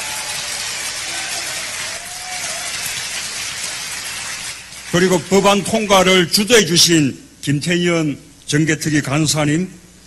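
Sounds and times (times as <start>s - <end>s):
audience applause: 0.0s - 5.5s
speech: 4.9s - 9.8s.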